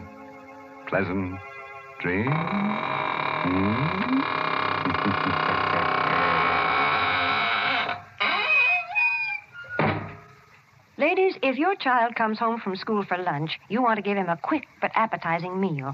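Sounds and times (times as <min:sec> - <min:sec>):
speech: 0:00.9 - 0:05.6, 0:11.0 - 0:15.9
squeaking door closing: 0:02.2 - 0:10.3.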